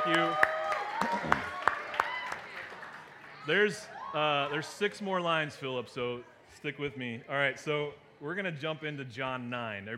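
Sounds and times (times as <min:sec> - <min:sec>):
audience applause: 0:00.0 - 0:03.7
speech: 0:00.1 - 0:01.4, 0:03.4 - 0:09.9.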